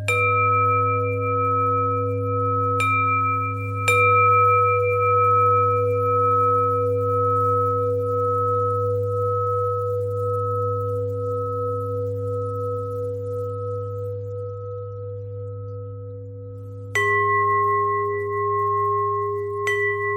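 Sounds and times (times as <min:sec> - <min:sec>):
bells: 0:00.0 - 0:20.1.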